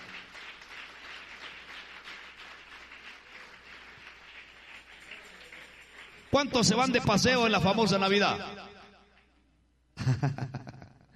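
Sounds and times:
crowd sustained applause: 0.0 - 6.4
speech: 6.3 - 8.7, 10.1 - 10.4.

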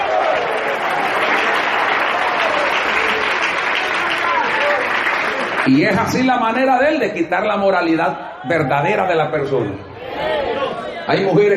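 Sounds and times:
audience applause: 0.0 - 6.5
speech: 5.6 - 9.9, 11.1 - 11.5.

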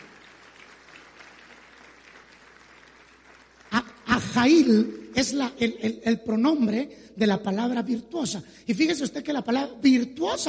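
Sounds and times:
audience applause: 0.0 - 4.1
speech: 4.2 - 10.4.

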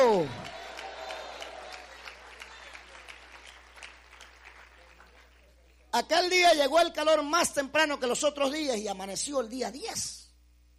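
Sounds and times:
audience applause: 0.0 - 5.6
speech: 0.1 - 0.4, 6.0 - 10.2.

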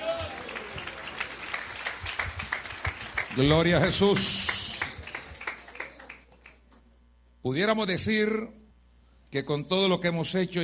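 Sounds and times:
audience applause: 0.0 - 6.6
speech: 3.4 - 4.5, 7.4 - 8.6, 9.3 - 10.6.

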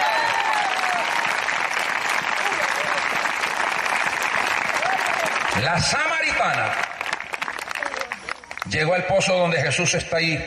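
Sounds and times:
audience applauding: 0.0 - 8.8
speech: 5.6 - 6.9, 8.6 - 10.4.

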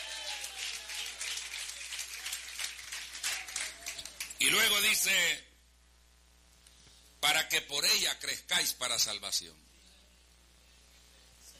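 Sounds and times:
crowd applause: 0.0 - 4.4
speech: 4.4 - 5.5, 7.3 - 9.7.

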